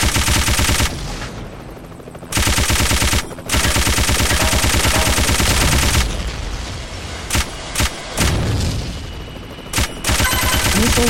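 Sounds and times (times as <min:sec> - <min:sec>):
gunshots: 0:00.0 - 0:01.0, 0:02.3 - 0:06.2, 0:07.3 - 0:08.6, 0:09.7 - 0:11.0
machine gun fire: 0:00.0 - 0:01.0, 0:02.3 - 0:06.1, 0:09.7 - 0:11.0.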